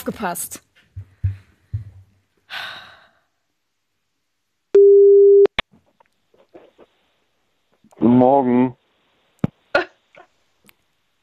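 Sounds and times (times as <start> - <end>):
speech: 0.0 - 0.7, 8.2 - 8.8
soft low thumps: 0.8 - 2.2
breathy sigh: 2.5 - 3.4
telephone ringback tone on an outgoing call: 4.8 - 5.5.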